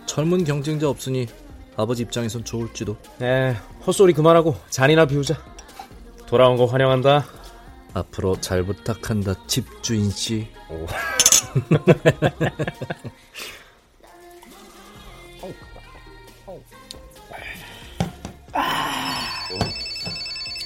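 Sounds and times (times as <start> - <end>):
speech: 0.2 - 5.5, 6.3 - 13.6, 15.4 - 15.7
laughter: 10.8 - 13.2
telephone ringing: 19.0 - 20.6.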